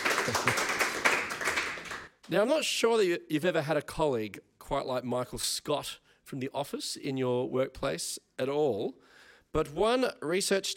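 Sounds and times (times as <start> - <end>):
round of applause: 0.0 - 2.1
speech: 0.2 - 0.6, 2.3 - 10.7.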